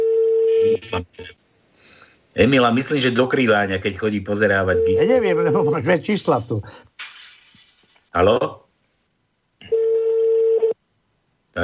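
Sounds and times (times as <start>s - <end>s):
speech: 0.8s - 1.4s, 2.4s - 6.9s, 8.1s - 8.6s
telephone dial tone: 9.7s - 10.8s.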